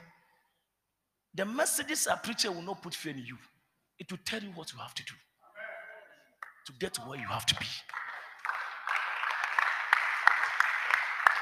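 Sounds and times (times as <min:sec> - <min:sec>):
speech: 0:01.4 - 0:05.3, 0:06.6 - 0:08.0
audience clapping: 0:06.4 - 0:11.4.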